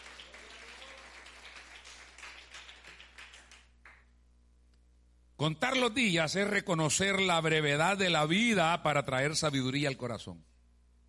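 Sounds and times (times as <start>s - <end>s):
audience applause: 0.0s - 4.0s
speech: 5.4s - 10.5s.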